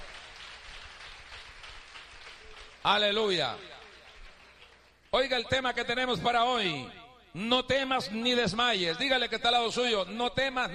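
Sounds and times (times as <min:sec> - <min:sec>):
audience applauding: 0:00.0 - 0:05.2
speech: 0:02.8 - 0:03.8, 0:05.1 - 0:10.7.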